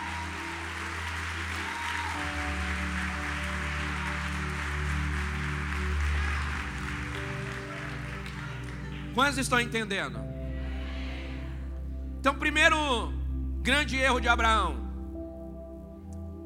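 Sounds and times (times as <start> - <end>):
audience applauding: 0.0 - 9.7
sustained low keyboard chords: 0.0 - 16.4
speech: 9.2 - 10.3, 12.2 - 14.8.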